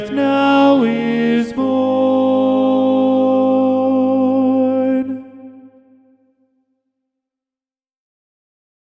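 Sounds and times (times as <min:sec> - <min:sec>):
SATB choir singing with tenor predominant: 0:00.0 - 0:06.2.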